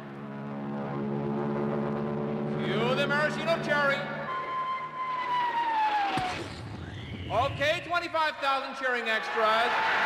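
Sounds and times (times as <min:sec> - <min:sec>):
Royal Canadian Air Force planes flying overhead: 0:00.0 - 0:07.4
speech: 0:02.7 - 0:04.2, 0:07.3 - 0:10.0.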